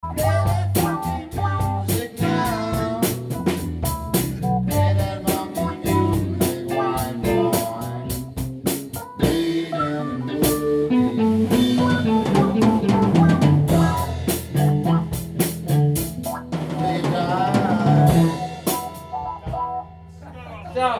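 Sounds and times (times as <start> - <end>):
funky music: 0.0 - 20.2.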